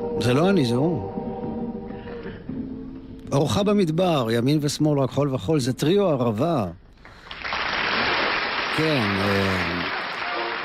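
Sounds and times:
speech: 0:00.2 - 0:01.1, 0:03.3 - 0:06.8, 0:08.7 - 0:10.0
audience applause at a live concert in Paris: 0:07.1 - 0:10.6.

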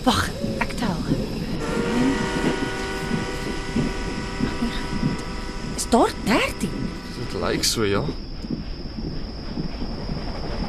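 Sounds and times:
speech: 0:00.0 - 0:00.5, 0:05.9 - 0:06.8, 0:07.4 - 0:08.2
faint whistle-like tones: 0:00.0 - 0:10.6
steam train rumbling and hissing as it departs: 0:00.0 - 0:10.6.

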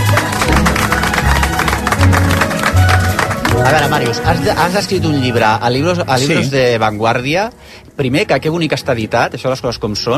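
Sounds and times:
studio applause: 0:00.0 - 0:05.5
speech: 0:03.7 - 0:10.1.

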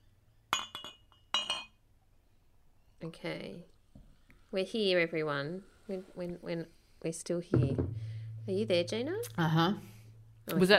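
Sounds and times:
glass clinking as a drink is poured: 0:00.5 - 0:01.8
speech: 0:03.0 - 0:03.8, 0:04.5 - 0:09.9, 0:10.5 - 0:10.7.

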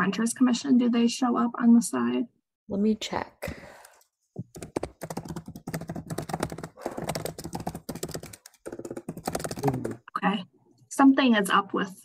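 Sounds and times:
speech: 0:00.1 - 0:03.8, 0:11.0 - 0:12.0
fingers typing on a computer keyboard: 0:04.4 - 0:10.0.

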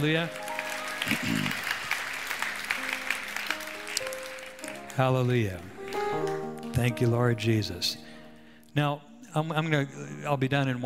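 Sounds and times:
speech: 0:00.0 - 0:01.6, 0:05.0 - 0:08.1, 0:08.8 - 0:10.8
audience hand clapping in praise: 0:00.0 - 0:06.8.

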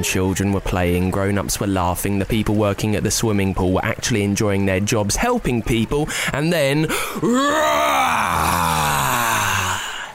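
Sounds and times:
speech: 0:00.0 - 0:08.9
person voicing a monster roar: 0:07.2 - 0:10.1.

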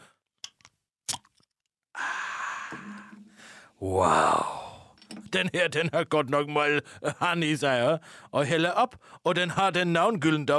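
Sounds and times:
beer bottle being opened with pop and fizzy hiss: 0:01.1 - 0:01.5
speech: 0:02.7 - 0:03.2, 0:03.8 - 0:04.6, 0:05.3 - 0:10.5.

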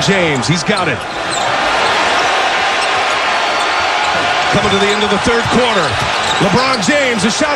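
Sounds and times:
speech: 0:00.0 - 0:01.6, 0:04.5 - 0:07.5
basketball arena crowd roaring and cheering: 0:00.0 - 0:07.5.

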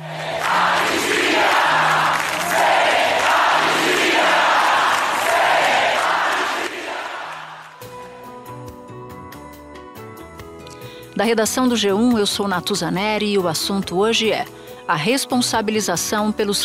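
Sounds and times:
crowd chanting at inauguration: 0:00.0 - 0:07.8
speech: 0:11.2 - 0:16.6.

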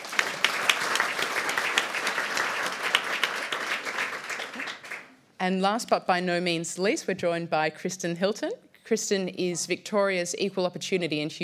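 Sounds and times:
audience applause welcoming a panel guest: 0:00.0 - 0:05.2
speech: 0:05.4 - 0:11.4.

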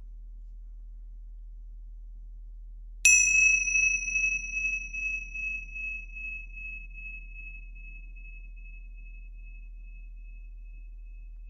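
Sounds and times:
meditation cymbal chime ringing: 0:03.1 - 0:06.7.

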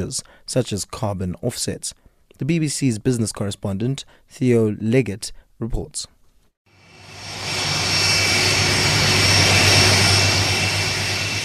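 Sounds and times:
speech: 0:00.0 - 0:06.2
jet aircraft engines roaring on the taxiways at London's Heathrow Airport: 0:06.8 - 0:11.4.

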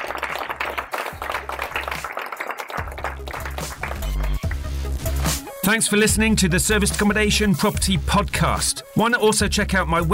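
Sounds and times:
applause: 0:00.0 - 0:05.4
speech: 0:05.7 - 0:10.1.

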